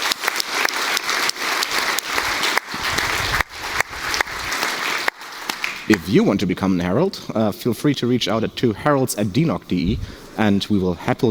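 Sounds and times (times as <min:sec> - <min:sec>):
audience applause: 0:00.0 - 0:06.7
speech: 0:06.1 - 0:11.2.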